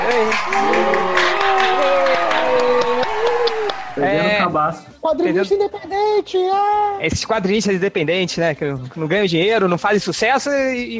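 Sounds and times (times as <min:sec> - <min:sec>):
applause for a guest: 0:00.0 - 0:04.2
speech: 0:04.0 - 0:10.9.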